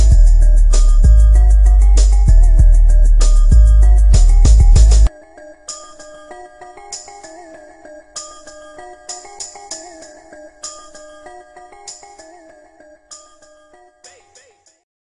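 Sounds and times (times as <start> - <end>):
boosted bass test: 0.0 - 5.1.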